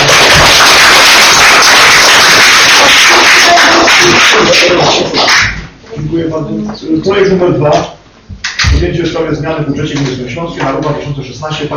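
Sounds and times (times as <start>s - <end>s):
crowd applause: 0.0s - 5.6s
speech: 6.4s - 8.0s, 8.8s - 11.7s.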